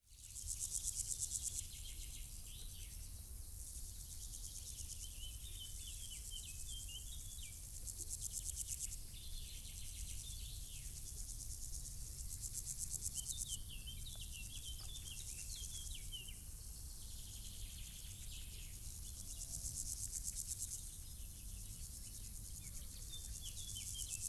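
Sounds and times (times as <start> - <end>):
insects stridulating: 0.3 - 24.2
birds chirping: 13.2 - 16.4.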